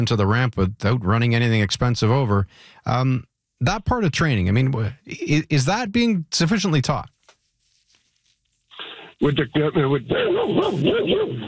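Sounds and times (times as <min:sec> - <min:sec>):
speech: 0:00.0 - 0:07.2, 0:09.2 - 0:11.4
dog barking in a truck: 0:10.2 - 0:11.4.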